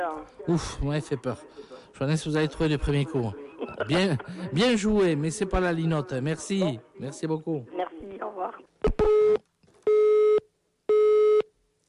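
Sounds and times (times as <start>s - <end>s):
speech: 0.0s - 9.4s
telephone busy signal after hang-up: 9.0s - 11.8s.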